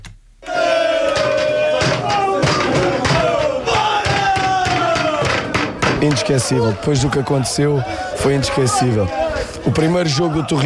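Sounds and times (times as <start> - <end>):
football crowd roaring and chanting in celebration: 0.4 - 10.6
scattered thuds: 1.1 - 6.7
speech: 6.0 - 10.6.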